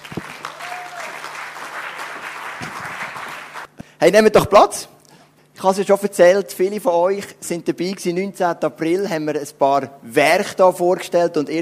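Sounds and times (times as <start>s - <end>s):
audience applause: 0.0s - 3.7s
speech: 4.0s - 4.9s, 5.6s - 11.6s.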